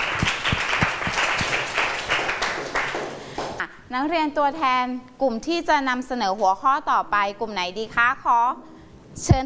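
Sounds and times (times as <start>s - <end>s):
applause for student representatives: 0.0s - 3.6s
speech: 3.9s - 9.4s.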